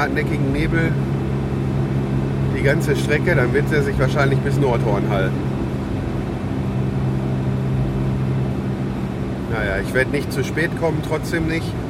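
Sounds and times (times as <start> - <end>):
speech: 0.0 - 1.2, 2.6 - 5.5, 9.5 - 11.8
car engine and tyres rumbling on a foggy country road: 0.0 - 11.8.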